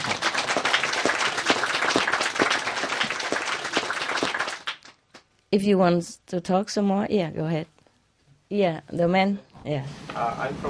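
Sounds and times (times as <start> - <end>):
audience clapping: 0.0 - 5.3
speech: 5.5 - 7.8, 8.5 - 10.6.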